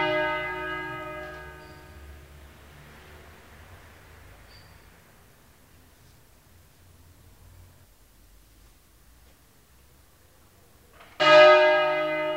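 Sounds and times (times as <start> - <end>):
church bells ringing for a funeral: 0.0 - 2.4, 11.0 - 12.3.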